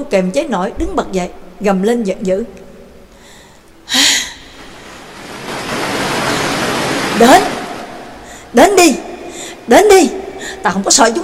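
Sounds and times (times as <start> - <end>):
speech: 0.0 - 2.6, 7.2 - 7.6, 8.5 - 9.1, 9.7 - 11.2
surf hiss: 3.9 - 8.8
large ocean wave crashing: 4.4 - 9.3.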